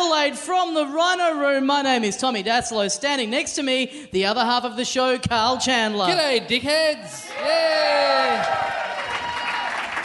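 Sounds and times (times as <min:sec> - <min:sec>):
speech: 0:00.2 - 0:08.7
crowd shouting at the Rhino Room in Adelaide: 0:07.2 - 0:09.8
person whooping at a live comedy show: 0:07.3 - 0:09.8
crowd clapping at the Rhino Room in Adelaide: 0:07.4 - 0:10.0.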